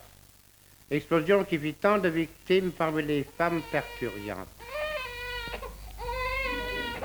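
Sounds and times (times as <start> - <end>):
speech: 0.9 - 4.8
newborn baby crying: 3.3 - 7.0.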